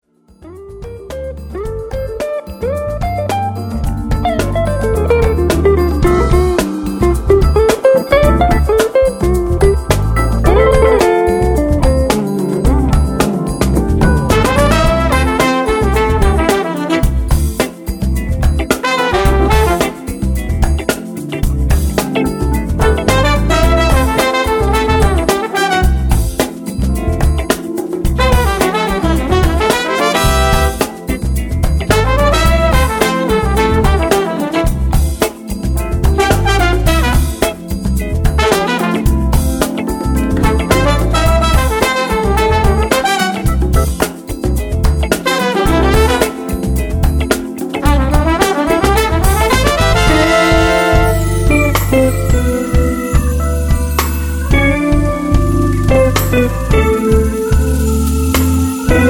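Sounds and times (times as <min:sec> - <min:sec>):
funk orchestra playing: 0:00.4 - 0:59.0.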